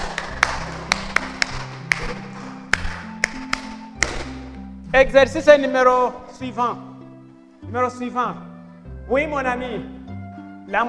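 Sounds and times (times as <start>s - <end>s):
classroom applause: 0.0s - 3.7s
speech: 4.9s - 6.9s, 7.6s - 8.5s, 9.1s - 10.0s, 10.7s - 10.8s.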